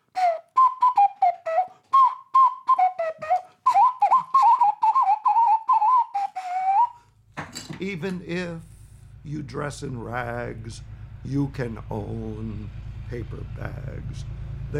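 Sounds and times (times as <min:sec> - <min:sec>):
ocarina solo: 0:00.0 - 0:07.0
speech: 0:07.8 - 0:14.7.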